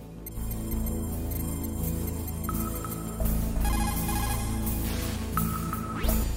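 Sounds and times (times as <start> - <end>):
outgoing phone call ringback tones over a codec link: 0.3 - 6.2.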